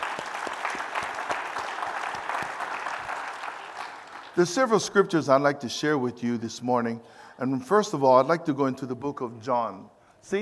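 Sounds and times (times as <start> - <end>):
audience clapping: 0.0 - 4.8
speech: 4.4 - 10.4.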